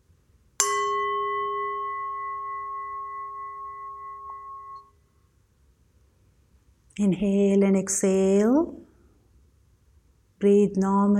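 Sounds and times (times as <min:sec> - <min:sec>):
gong struck to start meditation: 0:00.6 - 0:04.8
speech: 0:07.0 - 0:08.8, 0:10.4 - 0:11.1.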